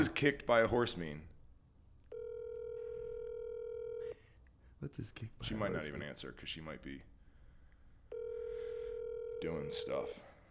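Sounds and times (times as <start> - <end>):
speech: 0.0 - 1.3, 4.8 - 7.1, 9.4 - 10.3
telephone dial tone on speakerphone: 2.1 - 4.1, 8.1 - 9.8.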